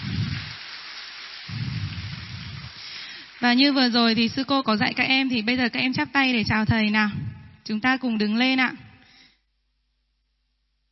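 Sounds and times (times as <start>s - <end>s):
applause welcoming a monk: 0.0s - 3.8s
speech: 3.4s - 8.8s.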